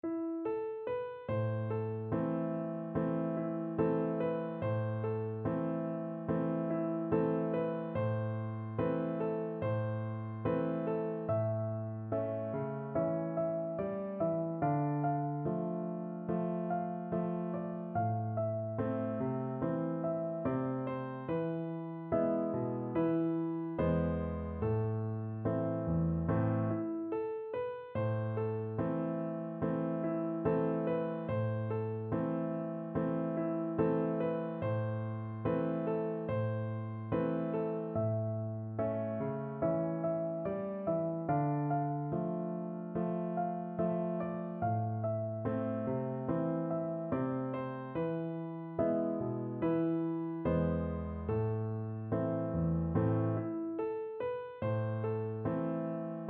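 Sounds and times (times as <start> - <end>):
piano duet of a folk song: 0.0 - 56.2.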